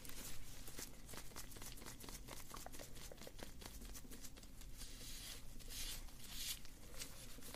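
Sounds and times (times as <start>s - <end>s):
hair brushing: 0.1s - 7.5s.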